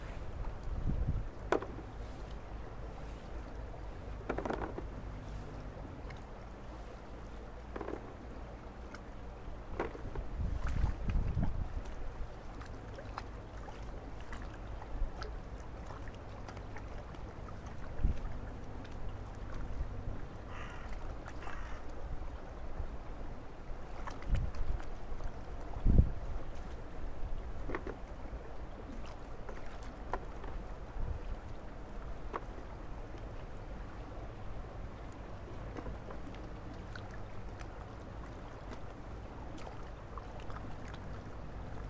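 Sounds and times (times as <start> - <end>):
running spring water at a washing spot: 0.0 - 41.8.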